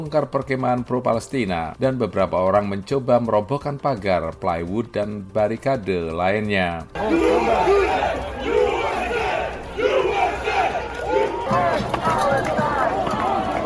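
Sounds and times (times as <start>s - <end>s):
speech: 0.0s - 8.6s
crowd shouting chants: 7.0s - 13.6s.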